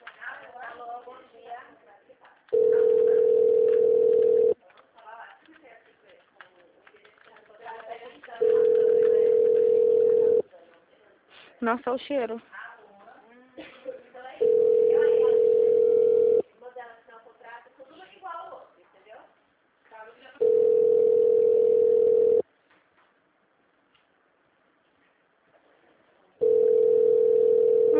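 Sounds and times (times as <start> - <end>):
telephone ringback tone: 2.5 - 4.6, 8.4 - 10.4, 14.4 - 16.4, 20.4 - 22.4, 26.4 - 27.9
speech: 11.6 - 12.6.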